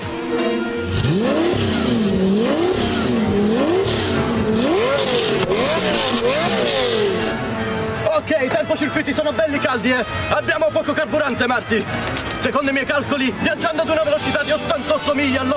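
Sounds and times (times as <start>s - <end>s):
small engine of a Panda car built into a time machine revving and accelerating: 0.3s - 7.5s
tire squeal: 0.9s - 7.5s
speech: 8.7s - 15.5s.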